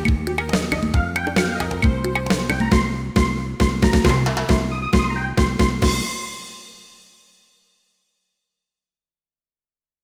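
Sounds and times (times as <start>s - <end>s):
SC88Pro sound module music: 0.0s - 6.3s.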